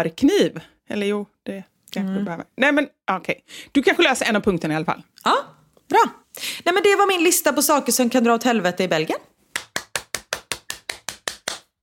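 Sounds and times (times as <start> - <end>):
speech: 0.0 - 9.3
person clapping hands: 9.5 - 11.8.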